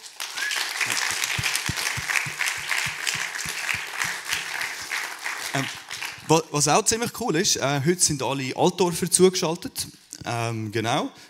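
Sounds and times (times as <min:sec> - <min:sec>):
audience applause: 0:00.0 - 0:06.4
speech: 0:00.9 - 0:01.2, 0:05.5 - 0:11.2.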